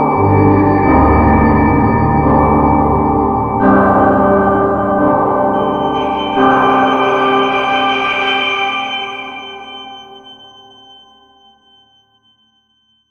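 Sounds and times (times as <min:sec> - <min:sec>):
modal synth pad: 0:00.1 - 0:09.4.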